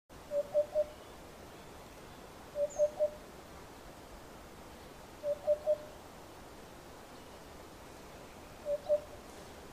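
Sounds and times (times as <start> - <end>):
Eurasian hoopoe repeating soft hollow three-note oop-oop-oop phrases: 0.3 - 1.0, 2.5 - 3.2, 5.2 - 5.9, 8.6 - 9.2.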